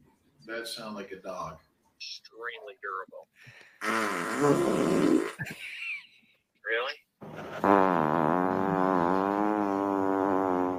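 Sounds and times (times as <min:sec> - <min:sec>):
speech: 0:00.5 - 0:05.9
fart: 0:03.8 - 0:05.4, 0:07.2 - 0:10.7.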